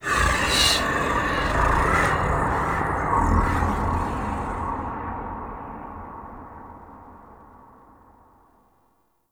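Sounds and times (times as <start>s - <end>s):
sky breaths ambience: 0.0s - 6.3s.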